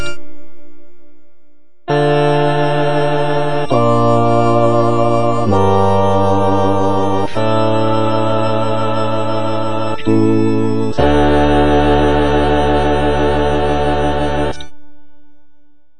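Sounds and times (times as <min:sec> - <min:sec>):
choir singing adagio bass part: 0:01.9 - 0:14.7.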